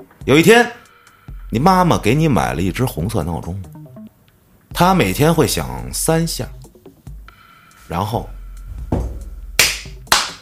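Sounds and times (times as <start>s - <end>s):
speech: 0.0s - 0.8s, 1.5s - 3.7s, 4.7s - 6.6s, 7.9s - 8.4s
hand claps: 9.6s - 10.4s.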